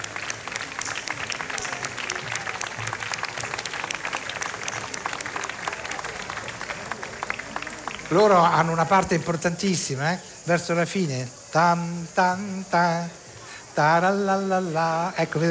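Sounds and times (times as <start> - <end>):
audience applause for children's choir: 0.0 - 15.4
speech: 8.1 - 13.2, 13.8 - 15.4.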